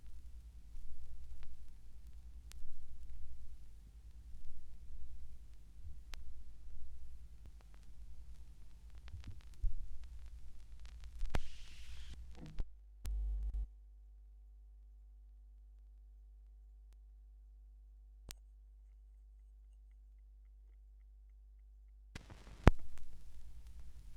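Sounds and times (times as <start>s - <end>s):
vinyl record noise: 0.0s - 13.7s, 22.2s - 24.1s.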